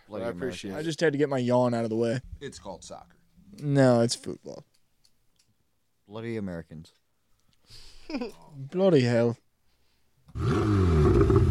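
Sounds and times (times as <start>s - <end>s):
speech: 0.1s - 4.7s, 6.1s - 7.0s, 7.7s - 9.4s, 10.4s - 11.3s
Ferrari engine revving roar: 10.4s - 11.4s.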